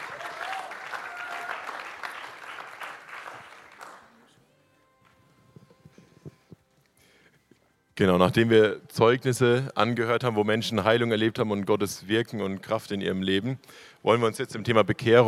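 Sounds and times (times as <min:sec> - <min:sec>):
audience applause at a church service for people who shared testimonies: 0:00.0 - 0:04.3
speech: 0:08.0 - 0:15.2.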